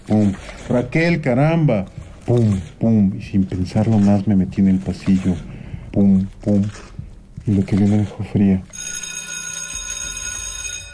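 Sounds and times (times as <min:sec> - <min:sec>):
speech: 0:00.1 - 0:09.0
school buzzer ringing: 0:08.7 - 0:10.9.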